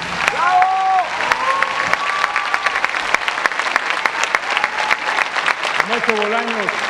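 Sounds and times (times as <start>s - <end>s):
crowd applause for the orchestra: 0.0s - 6.8s
speech: 6.1s - 6.8s.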